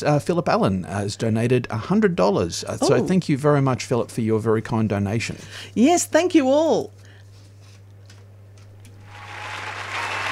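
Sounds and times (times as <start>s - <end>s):
speech: 0.0s - 7.0s
low constant hum: 0.0s - 8.9s
crowd applauding: 9.1s - 10.3s.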